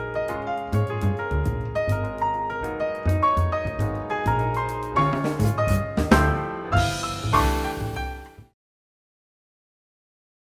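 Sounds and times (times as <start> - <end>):
jazz trio playing: 0.0 - 8.5.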